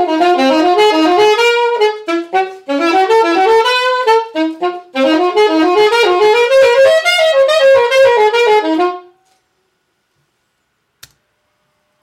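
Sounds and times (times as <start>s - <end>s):
alto saxophone: 0.0s - 9.4s.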